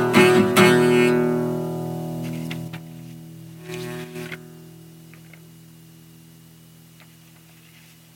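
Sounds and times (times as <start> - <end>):
live acoustic music: 0.0 - 2.8.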